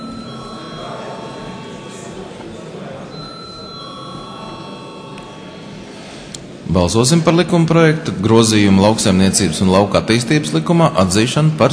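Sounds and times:
parliament voting bell ringing: 0.0 - 6.1
low murmur of noise: 0.0 - 11.7
speech: 6.7 - 11.7.

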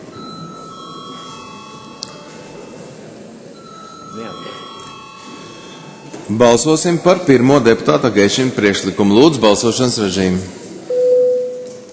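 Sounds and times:
low parliament chamber murmur: 0.0 - 10.9
bell rung in a parliament chamber before a vote: 0.1 - 7.2
speech: 4.2 - 4.6, 6.3 - 10.6.

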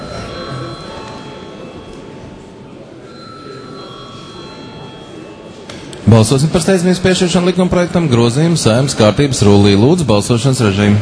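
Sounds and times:
parliament chamber electric bell ringing: 0.0 - 2.3, 3.0 - 5.5
murmur of voices: 0.0 - 11.0
speech: 6.1 - 11.0.

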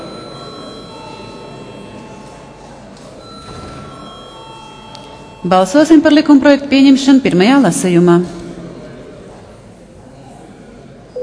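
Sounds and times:
parliamentary voting bell ringing: 0.0 - 7.0
faint room murmur: 0.0 - 11.2
speech: 5.4 - 8.4.

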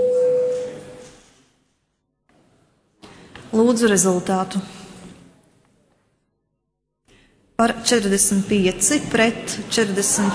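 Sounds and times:
parliamentary voting bell tone: 0.0 - 1.0
speech: 3.5 - 4.8, 7.6 - 10.3.

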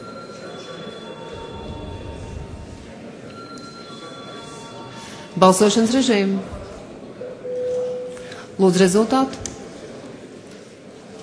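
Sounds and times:
parliamentary voting bell ringing: 0.0 - 2.2, 3.3 - 6.2, 7.3 - 8.7
speech: 5.4 - 6.6, 8.6 - 9.4.

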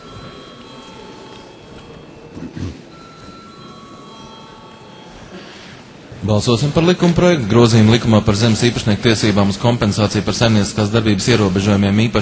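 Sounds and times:
parliament bell ringing: 0.0 - 5.4
speech: 2.4 - 2.8, 6.3 - 12.2.

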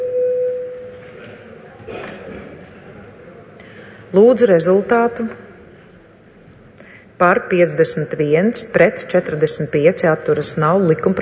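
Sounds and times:
parliament voting bell signal tone: 0.0 - 1.0
low murmur of voices and room noise: 0.9 - 6.8
speech: 4.1 - 5.4, 7.2 - 11.2.

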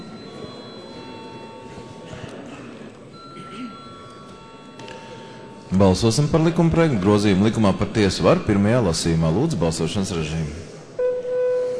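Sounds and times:
parliament electric vote bell ringing: 0.0 - 2.1, 3.1 - 6.7
murmur of people talking: 0.0 - 11.7
speech: 5.7 - 10.7.

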